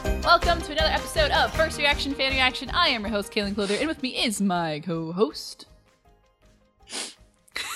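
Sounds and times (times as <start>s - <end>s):
speech: 0.3s - 5.7s
sniffing: 6.9s - 7.3s.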